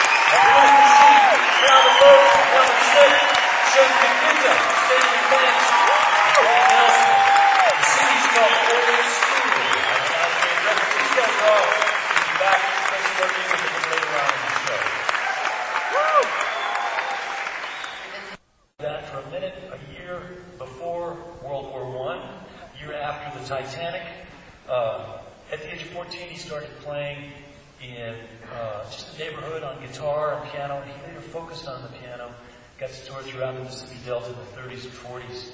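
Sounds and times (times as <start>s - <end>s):
audience applause and clapping: 0.0s - 18.4s
speech: 4.4s - 7.2s, 11.3s - 15.0s, 15.9s - 16.6s, 25.8s - 35.5s.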